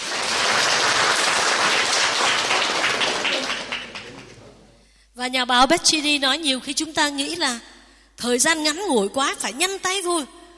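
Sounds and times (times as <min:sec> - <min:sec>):
audience applause: 0:00.0 - 0:04.5
speech: 0:05.2 - 0:10.4.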